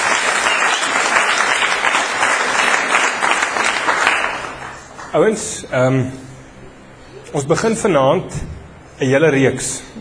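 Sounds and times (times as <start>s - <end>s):
audience applause: 0.0s - 5.1s
speech: 5.2s - 6.3s, 7.3s - 9.9s.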